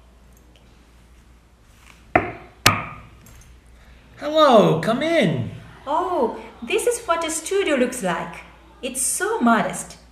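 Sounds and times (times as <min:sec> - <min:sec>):
knocking on a door: 0:02.2 - 0:03.0
speech: 0:04.2 - 0:10.0.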